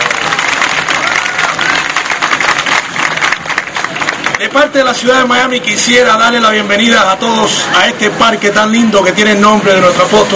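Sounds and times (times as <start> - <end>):
audience applause: 0.0 - 4.7
speech: 4.4 - 10.3.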